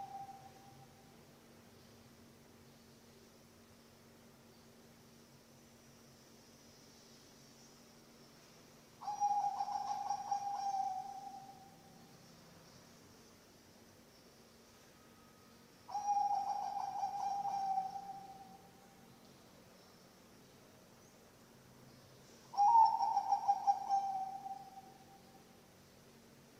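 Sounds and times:
zebra dove cooing: 9.0s - 11.6s, 15.9s - 18.5s, 22.5s - 25.0s.

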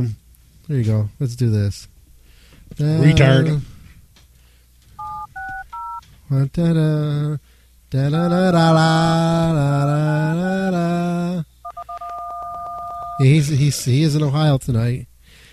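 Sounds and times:
speech: 0.0s - 1.9s, 2.7s - 3.7s, 6.3s - 11.5s, 13.2s - 15.1s
dual-tone telephone keypad beeps: 5.0s - 6.0s, 11.7s - 13.2s.

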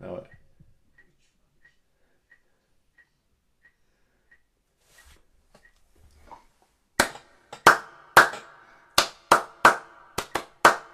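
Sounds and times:
soft rustle: 4.7s - 6.8s
hand clapping in time: 7.0s - 10.9s.

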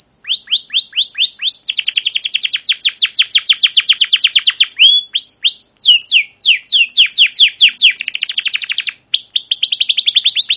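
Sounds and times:
captive canary singing chirps whistles and buzzy rattling rolls: 0.0s - 10.5s.

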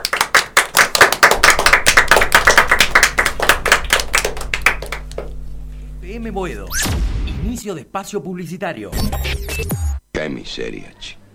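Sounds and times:
audience applause for a group of children: 0.0s - 5.4s
speech: 6.2s - 11.2s.

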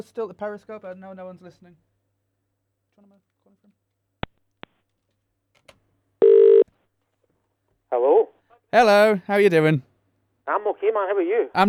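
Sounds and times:
speech: 0.0s - 1.9s, 3.0s - 3.8s, 7.9s - 9.9s, 10.5s - 11.6s
buzzing phone ring tone: 6.2s - 6.6s.

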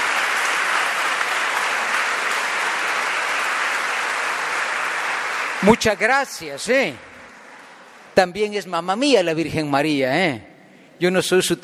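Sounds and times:
applause: 0.0s - 8.2s
speech: 5.6s - 7.1s, 8.2s - 11.6s.

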